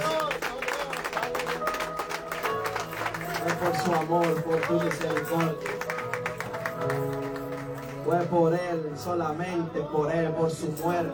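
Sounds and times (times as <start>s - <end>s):
crowd applauding: 0.0s - 8.6s
speech: 3.6s - 5.7s, 8.1s - 11.1s.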